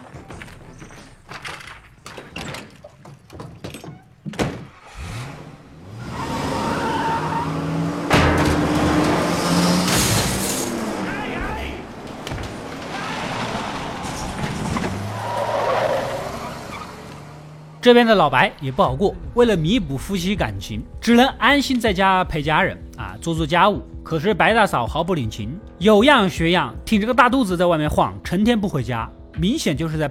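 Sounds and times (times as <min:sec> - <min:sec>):
tires skidding and squealing: 0:04.6 - 0:19.6
car engine roaring as it is driven off in a hurry: 0:04.6 - 0:21.0
speech: 0:17.8 - 0:30.0.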